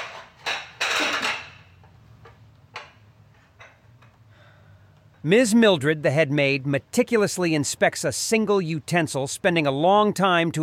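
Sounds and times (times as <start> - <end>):
stack of plates clattering: 0.0 - 1.6
speech: 5.2 - 10.6.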